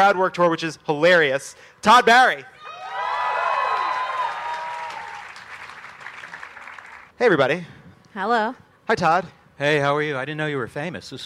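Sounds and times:
speech: 0:00.0 - 0:02.6, 0:07.2 - 0:11.2
live audience cheering: 0:02.6 - 0:06.9
live audience applauding: 0:03.1 - 0:07.1.

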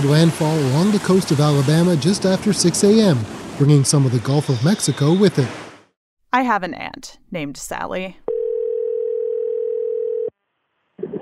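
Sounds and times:
speech: 0:00.0 - 0:05.6, 0:06.3 - 0:08.2
phone line ringback tone: 0:08.3 - 0:10.3.

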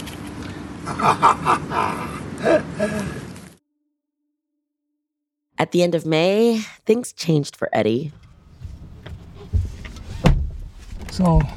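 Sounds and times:
speech: 0:00.8 - 0:03.2, 0:05.6 - 0:08.2, 0:11.1 - 0:11.5
car thumps as it rolls along: 0:08.6 - 0:11.5.

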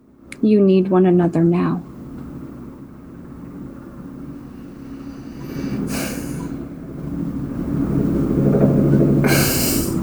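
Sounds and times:
helicopters flying outside: 0:00.0 - 0:10.0
speech: 0:00.4 - 0:01.9
breathy noise bursts: 0:04.4 - 0:06.8, 0:09.2 - 0:10.0.

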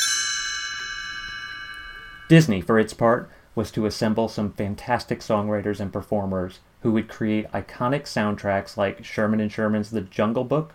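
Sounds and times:
bright shimmering page-turn chime: 0:00.0 - 0:02.7
speech: 0:02.3 - 0:10.7.

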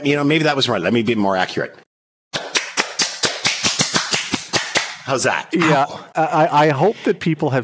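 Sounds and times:
speech: 0:00.0 - 0:01.8, 0:05.1 - 0:07.6
person clapping in an odd fast style: 0:02.4 - 0:05.0.

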